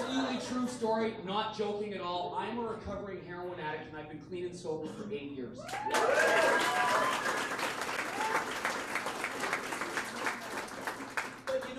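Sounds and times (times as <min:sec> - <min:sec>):
speech: 0:00.8 - 0:07.6
crowd applause: 0:05.7 - 0:11.7.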